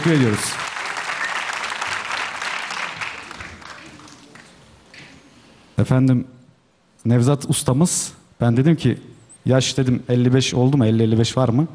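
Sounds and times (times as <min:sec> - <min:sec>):
speech: 0:00.0 - 0:00.7, 0:05.8 - 0:06.4, 0:07.0 - 0:11.7
audience applause: 0:00.0 - 0:04.6.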